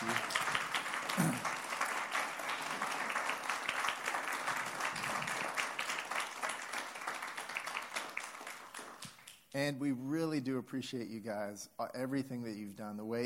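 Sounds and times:
audience applause: 0:00.0 - 0:09.4
speech: 0:09.6 - 0:13.2.

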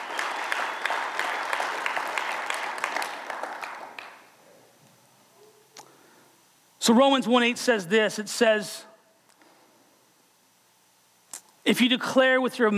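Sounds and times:
audience clapping: 0:00.0 - 0:04.4
speech: 0:06.9 - 0:08.9, 0:11.7 - 0:12.7.

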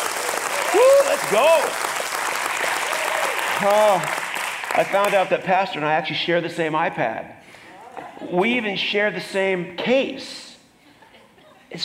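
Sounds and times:
audience round of applause: 0:00.0 - 0:05.4
speech: 0:00.7 - 0:01.9, 0:03.6 - 0:07.4, 0:08.2 - 0:10.4.

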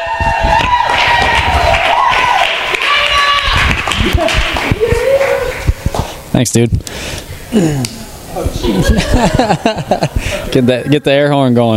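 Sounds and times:
crowd applauding and cheering: 0:00.0 - 0:06.2
laughter: 0:04.0 - 0:05.5, 0:08.4 - 0:11.3
speech: 0:06.4 - 0:08.0, 0:08.6 - 0:11.7.

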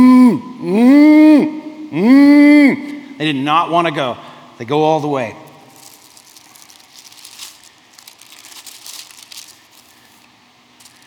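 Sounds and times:
human voice imitating cows lowing: 0:00.0 - 0:03.2
speech: 0:03.2 - 0:05.4.

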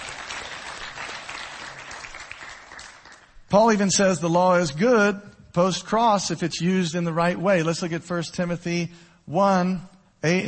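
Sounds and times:
audience clapping hands: 0:00.0 - 0:03.5
speech: 0:03.5 - 0:10.4.

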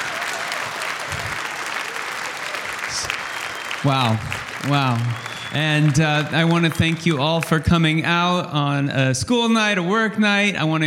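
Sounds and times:
audience applause: 0:00.0 - 0:08.1
speech: 0:03.8 - 0:10.8.

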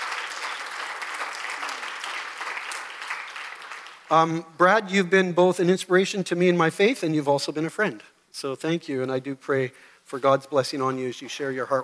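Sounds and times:
audience applause: 0:00.0 - 0:04.1
speech: 0:04.1 - 0:11.8.

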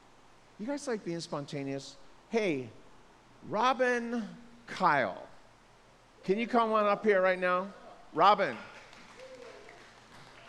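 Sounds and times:
speech: 0:00.6 - 0:02.8, 0:03.4 - 0:05.3, 0:06.2 - 0:08.7
weak audience applause: 0:08.5 - 0:10.4.

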